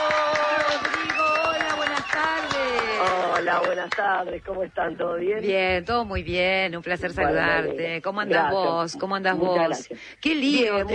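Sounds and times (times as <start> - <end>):
audience applause welcoming a guest: 0.0 - 4.1
speech: 3.4 - 10.9.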